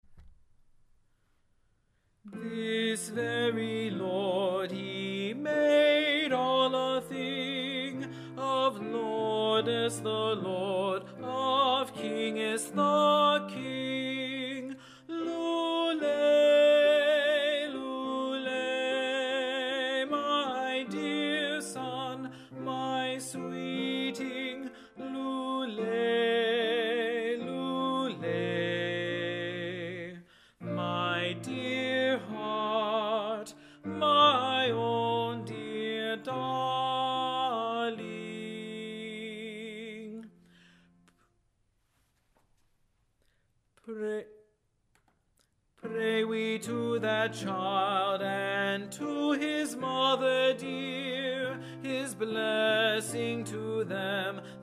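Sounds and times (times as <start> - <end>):
tenor singing: 2.3 - 40.4, 43.8 - 44.4, 45.8 - 54.6.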